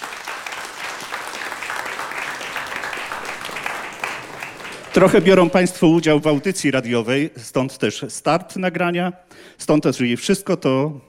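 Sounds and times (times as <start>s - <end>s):
applause: 0.0s - 6.4s
speech: 5.0s - 11.0s.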